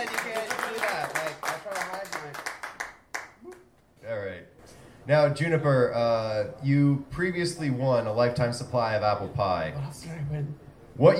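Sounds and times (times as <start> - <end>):
crowd applauding: 0.0 - 3.6
speech: 5.0 - 11.1.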